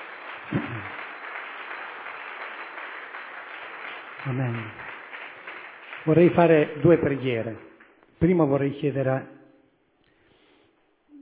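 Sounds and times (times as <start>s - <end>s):
audience applauding: 0.0s - 7.9s
speech: 4.2s - 4.8s, 6.0s - 9.4s.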